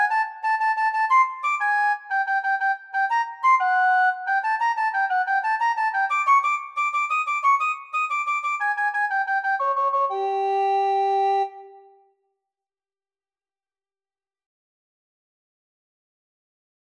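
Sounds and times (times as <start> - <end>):
recorder playing: 0.0 - 11.9.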